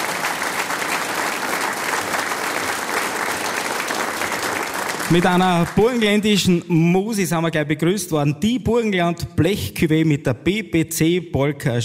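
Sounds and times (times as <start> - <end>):
audience applause: 0.0 - 6.3
speech: 5.1 - 11.8.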